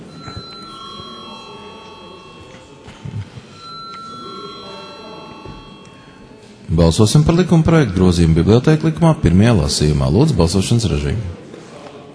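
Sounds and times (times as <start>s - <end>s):
electric bell ringing in a parliament chamber before a vote: 0.0s - 6.6s
murmur of voices: 0.0s - 12.1s
speech: 6.7s - 11.4s.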